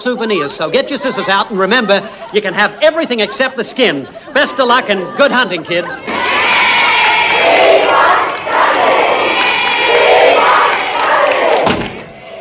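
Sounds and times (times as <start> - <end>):
speech: 0.0 - 6.6
laughter: 0.0 - 10.6
large crowd of fans cheering and roaring: 0.0 - 12.3
thud: 11.6 - 12.1.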